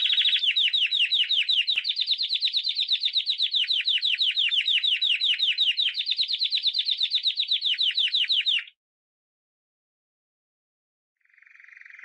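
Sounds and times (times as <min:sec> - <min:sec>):
canary song of rapid buzzy trills: 0:00.0 - 0:08.7.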